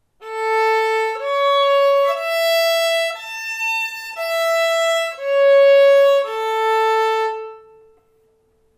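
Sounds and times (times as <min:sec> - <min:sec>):
arpeggios and scales in A: 0:00.2 - 0:08.0.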